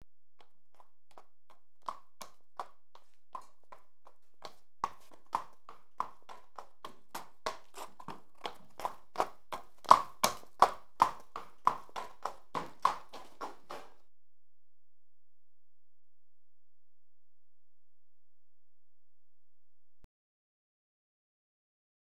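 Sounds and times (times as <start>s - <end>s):
horse hooves walking: 0.4s - 14.0s.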